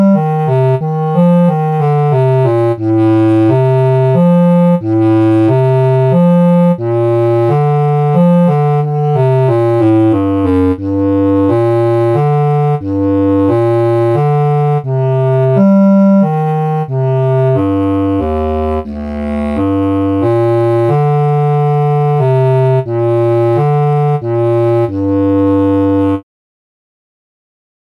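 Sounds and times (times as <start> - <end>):
lyrical bass clarinet: 0.0 - 26.2.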